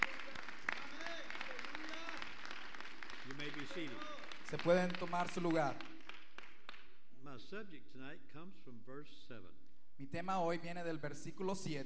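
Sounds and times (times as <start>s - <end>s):
audience applause: 0.0s - 6.8s
speech: 3.4s - 5.9s, 7.4s - 11.8s.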